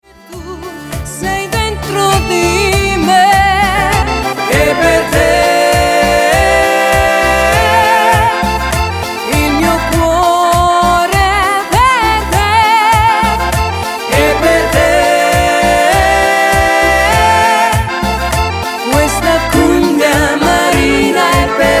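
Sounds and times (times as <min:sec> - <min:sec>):
cumbia music: 0:00.0 - 0:21.7.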